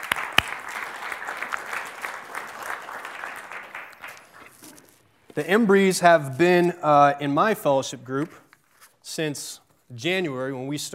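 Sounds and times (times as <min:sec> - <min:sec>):
audience applauding welcoming a couple: 0:00.0 - 0:04.8
speech: 0:05.4 - 0:08.4, 0:09.2 - 0:10.9.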